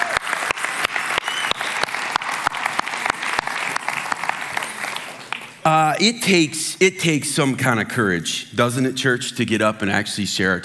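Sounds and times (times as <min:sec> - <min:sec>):
audience applause: 0:00.0 - 0:05.6
speech: 0:05.7 - 0:10.6.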